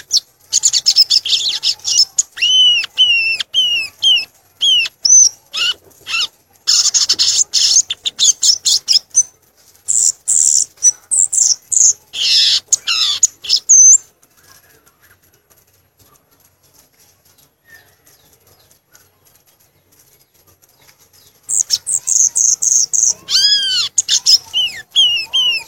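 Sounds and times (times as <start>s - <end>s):
violaceous euphonia singing: 0.0s - 25.6s.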